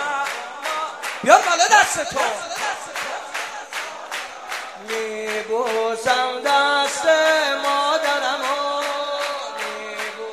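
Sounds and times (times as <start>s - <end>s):
concert audience clapping along: 0.0s - 10.3s
speech: 1.2s - 3.0s, 4.8s - 8.6s.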